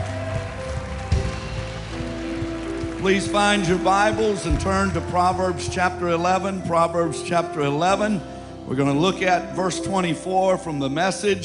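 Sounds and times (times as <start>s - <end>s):
audience clapping: 0.0s - 6.2s
speech: 3.0s - 11.4s.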